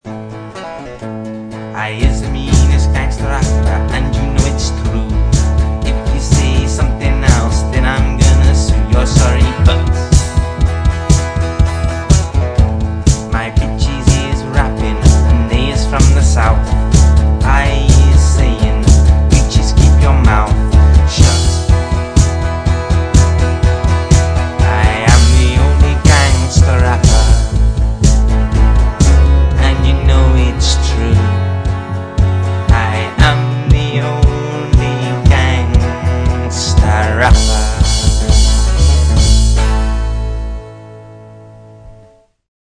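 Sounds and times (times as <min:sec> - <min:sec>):
ghetto rap music beat: 0:02.0 - 0:39.7.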